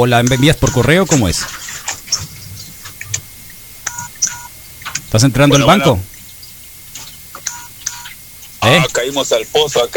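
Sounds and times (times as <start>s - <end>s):
phone keypad dialing tones: 0.0s - 1.0s, 3.8s - 4.6s, 7.4s - 8.2s
speech: 0.0s - 2.2s, 5.1s - 6.1s, 8.6s - 9.9s.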